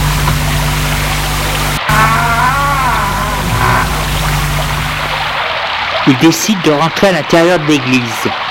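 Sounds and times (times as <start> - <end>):
steady loud rushing hiss: 0.0 - 5.5
side door creaking open: 1.7 - 5.4
speech: 6.1 - 8.4.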